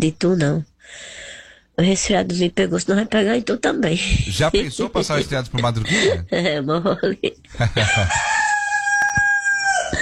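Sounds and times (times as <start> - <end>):
speech: 0.0 - 1.2, 1.8 - 8.3
laughter: 4.3 - 6.4, 7.1 - 8.5
rooster crowing: 7.6 - 10.0.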